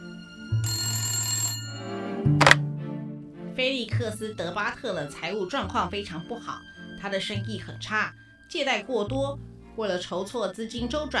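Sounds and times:
telephone ringing: 0:00.0 - 0:02.6
speech: 0:02.2 - 0:02.5, 0:03.6 - 0:11.1.

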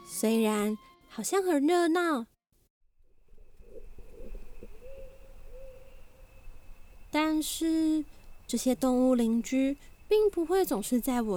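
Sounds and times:
speech: 0:00.2 - 0:02.3, 0:07.2 - 0:11.3
little blue bird calling: 0:03.2 - 0:11.3.

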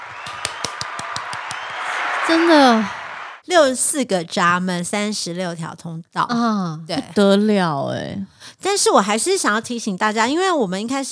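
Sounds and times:
hand clapping: 0:00.0 - 0:03.4
speech: 0:02.3 - 0:11.1.

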